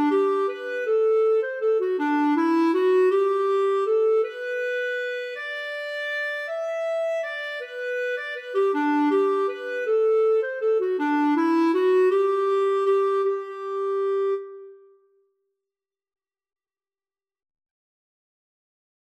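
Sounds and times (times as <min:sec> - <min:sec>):
waltz in G: 0:00.0 - 0:14.7.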